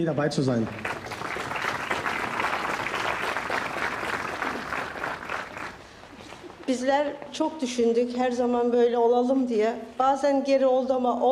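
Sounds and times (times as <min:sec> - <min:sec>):
speech: 0:00.0 - 0:00.9, 0:06.7 - 0:11.2
audience applause at a memorial event: 0:00.0 - 0:06.5.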